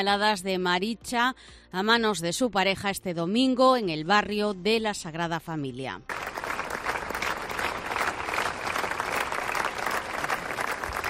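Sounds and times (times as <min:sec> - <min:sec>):
speech: 0:00.0 - 0:06.2
crowd applause in Plaza de María Pita: 0:06.1 - 0:11.0.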